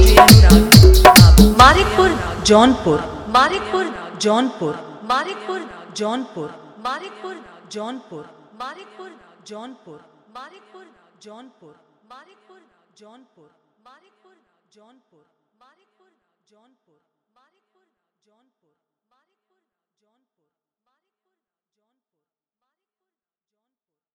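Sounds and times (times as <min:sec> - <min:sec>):
Bhojpuri hit DJ song mix: 0:00.0 - 0:03.8.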